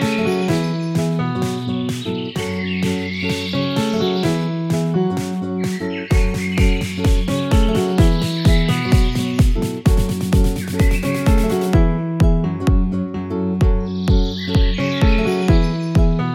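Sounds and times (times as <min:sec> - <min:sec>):
house music mix: 0:00.0 - 0:16.3.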